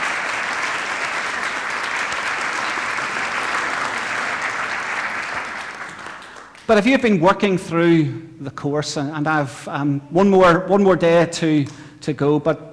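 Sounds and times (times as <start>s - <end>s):
audience applause: 0.0s - 6.7s
speech: 6.7s - 12.7s.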